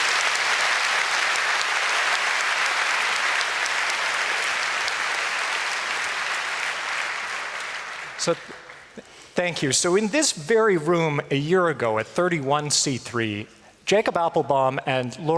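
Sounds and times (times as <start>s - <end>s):
audience applause: 0.0s - 9.2s
speech: 8.2s - 15.3s.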